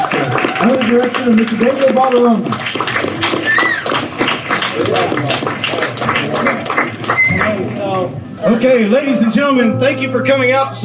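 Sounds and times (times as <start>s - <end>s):
audience applause: 0.0s - 7.6s
speech: 0.6s - 3.3s, 8.0s - 10.8s.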